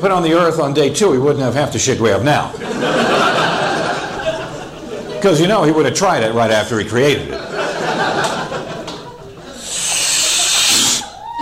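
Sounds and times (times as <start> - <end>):
speech: 0.0 - 3.5, 5.2 - 7.6
laughter: 2.5 - 5.5, 7.2 - 10.5
vocal sounds: 9.5 - 11.2
voice imitating a huge inhale from a joint: 9.5 - 11.2.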